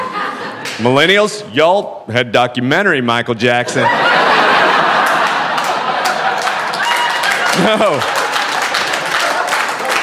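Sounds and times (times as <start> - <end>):
laughter: 0.0 - 0.9, 3.6 - 10.0
speech: 0.8 - 4.1, 7.6 - 8.1
audience applause: 4.6 - 10.0.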